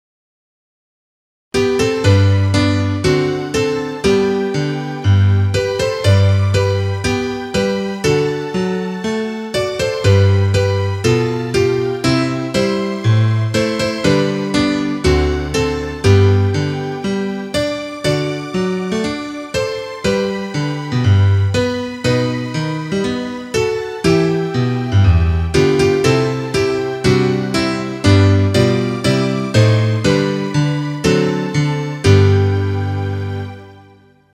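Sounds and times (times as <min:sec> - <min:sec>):
instrumental music: 0:01.6 - 0:34.3.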